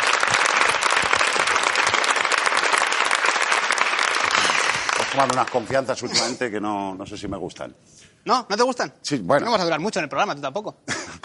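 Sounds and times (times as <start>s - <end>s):
audience applause: 0.0s - 5.9s
speech: 5.2s - 11.0s.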